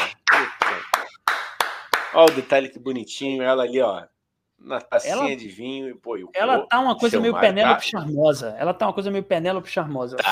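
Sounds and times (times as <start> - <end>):
applause for a couple: 0.0 - 2.5
speech: 2.1 - 10.3.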